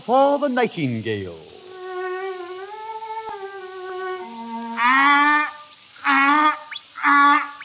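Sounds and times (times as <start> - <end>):
speech: 0.0 - 1.5
donkey braying: 1.4 - 7.6.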